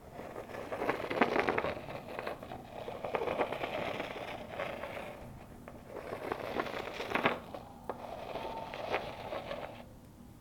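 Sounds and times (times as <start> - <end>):
stone dragging: 0.0 - 9.9.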